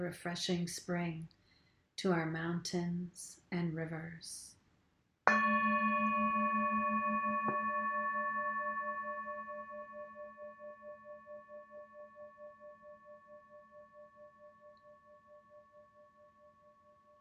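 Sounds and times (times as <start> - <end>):
speech: 0.0 - 1.4, 2.0 - 4.6
meditation bell ringing: 5.3 - 10.0.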